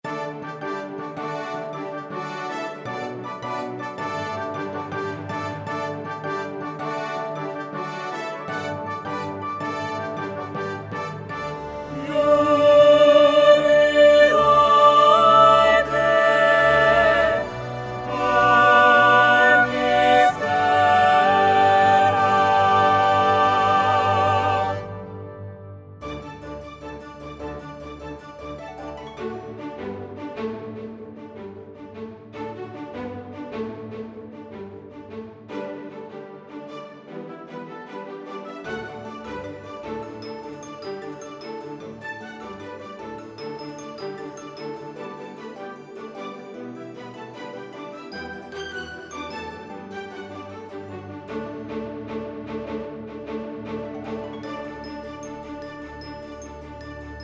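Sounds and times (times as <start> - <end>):
soprano singing: 11.8 - 25.3.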